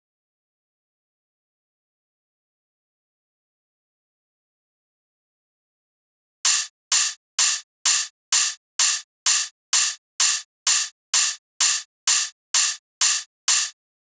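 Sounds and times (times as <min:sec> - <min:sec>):
drum loop: 0:06.5 - 0:13.7
open hi-hat: 0:06.5 - 0:13.7.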